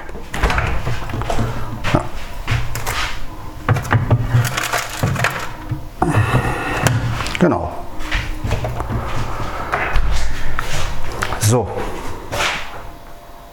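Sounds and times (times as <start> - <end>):
items handled and set down inside a refrigerator: 0.0 - 3.0, 3.6 - 7.2
steady low hum: 0.0 - 13.5
speech: 7.4 - 7.8.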